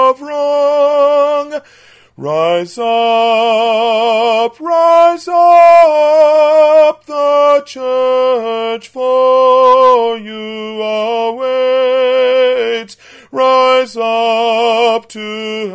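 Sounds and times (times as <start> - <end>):
tenor voice singing: 0.0 - 15.7.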